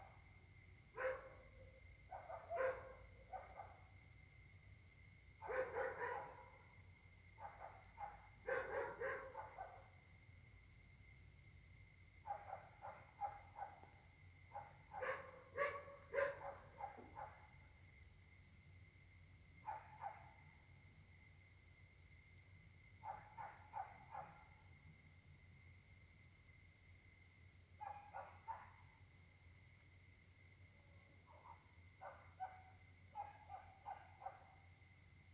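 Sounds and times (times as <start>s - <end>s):
dogs barking: 1.0s - 1.4s, 2.1s - 3.8s, 5.4s - 6.6s, 7.4s - 9.9s, 12.3s - 13.9s, 14.5s - 17.5s, 23.0s - 24.4s, 27.8s - 28.8s, 31.3s - 34.6s.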